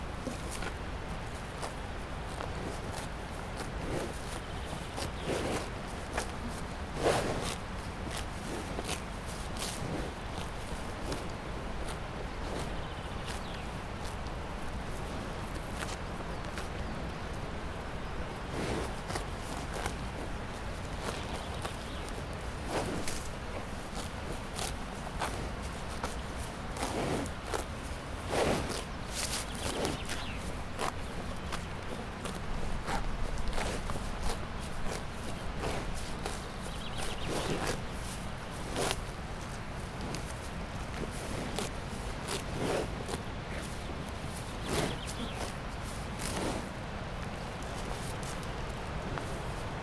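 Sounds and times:
happy cow in Saas Fee: 0.1 - 17.4, 18.4 - 49.6.

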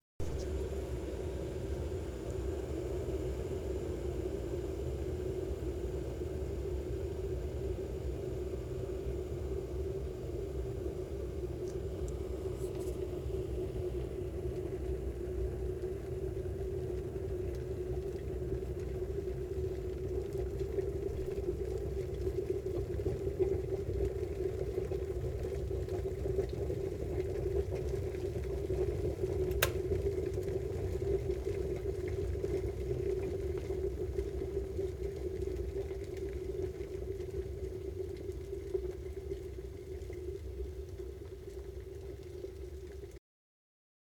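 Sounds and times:
kettle boiling: 0.2 - 43.2.

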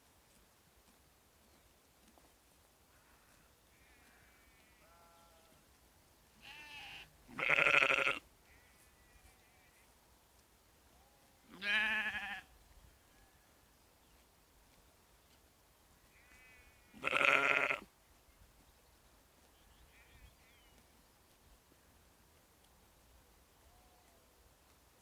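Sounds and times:
sheep and lambs bleating: 3.0 - 5.6, 6.4 - 9.8, 11.5 - 12.5, 16.1 - 17.9.

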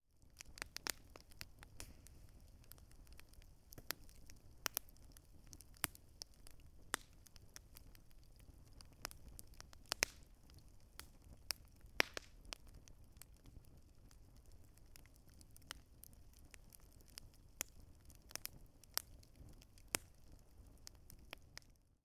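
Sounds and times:
campfire: 0.0 - 22.0.

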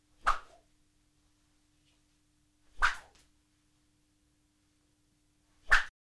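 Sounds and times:
whipping: 0.2 - 0.6, 2.8 - 3.2, 5.7 - 5.9.

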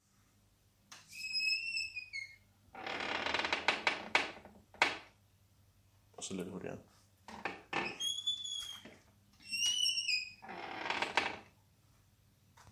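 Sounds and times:
door squeaking: 1.1 - 5.0, 7.3 - 11.5.

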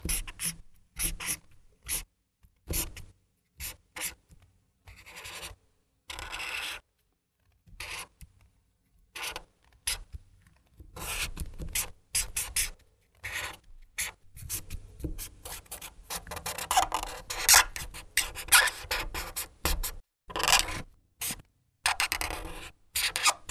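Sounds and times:
marker pen on paper: 0.0 - 8.4, 9.1 - 23.4.

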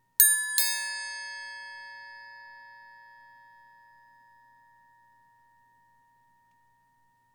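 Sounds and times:
triangle door bell: 0.2 - 4.0.

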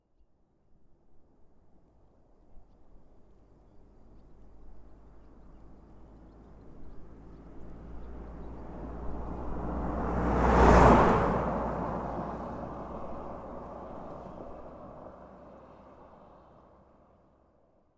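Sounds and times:
car passing at high speed: 7.2 - 16.8.

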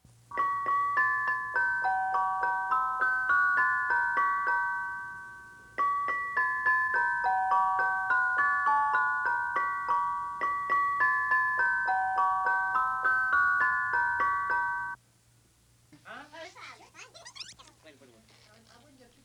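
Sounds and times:
music box: 0.3 - 15.0.

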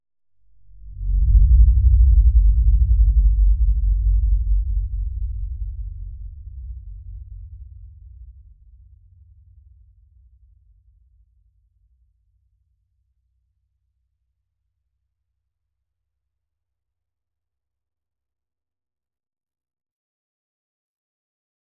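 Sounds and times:
low end rumble: 0.8 - 8.0.

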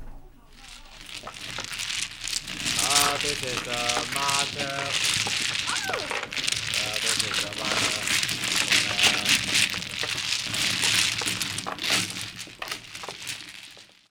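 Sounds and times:
mahjong game in an apartment: 0.5 - 14.0.

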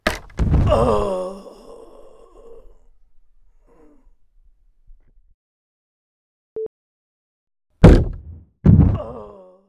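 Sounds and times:
body falling through a trapdoor: 0.0 - 1.2, 7.8 - 9.2.

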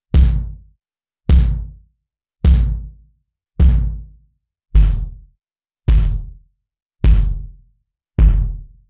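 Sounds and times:
tired old bass drum distorted: 0.1 - 0.6, 1.3 - 1.8, 2.4 - 3.0, 3.6 - 4.1, 4.8 - 5.2, 5.9 - 6.4, 7.0 - 7.6, 8.2 - 8.8.

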